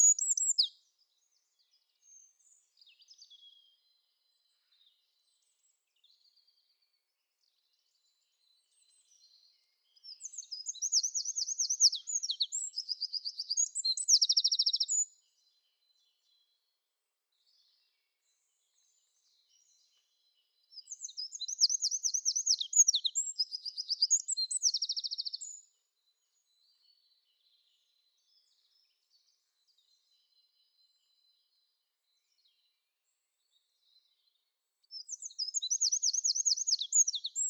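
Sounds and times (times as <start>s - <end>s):
Eurasian wren Troglodytes troglodytes singing typical song with trills: 0.0s - 0.7s, 10.0s - 15.1s, 20.8s - 25.6s, 34.9s - 37.4s.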